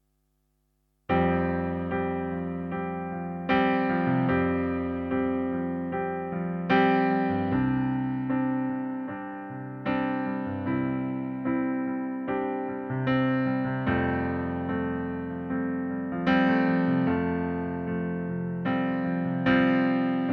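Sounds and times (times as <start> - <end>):
piano backing track in C major: 1.1 - 20.3.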